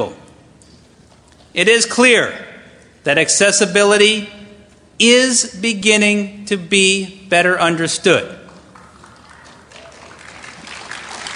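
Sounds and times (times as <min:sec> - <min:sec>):
speech: 0:00.0 - 0:00.2, 0:01.5 - 0:04.4, 0:05.0 - 0:08.4
light applause: 0:08.5 - 0:11.3.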